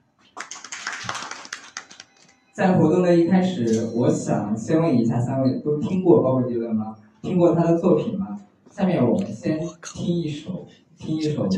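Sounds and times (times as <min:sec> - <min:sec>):
audience applause: 0:00.4 - 0:02.3
speech: 0:02.6 - 0:11.5.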